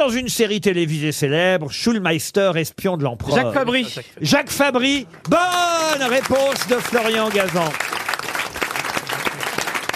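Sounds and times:
speech: 0:00.0 - 0:08.0
crowd applauding: 0:05.0 - 0:09.9.

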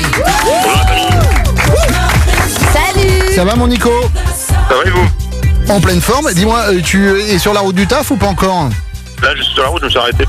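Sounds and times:
cheering: 0:00.0 - 0:02.4
applause: 0:00.0 - 0:03.4
speech: 0:03.4 - 0:10.2.

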